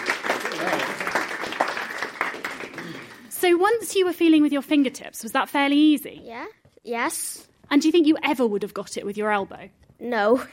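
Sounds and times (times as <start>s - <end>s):
audience applause: 0.0s - 3.5s
speech: 3.4s - 10.5s.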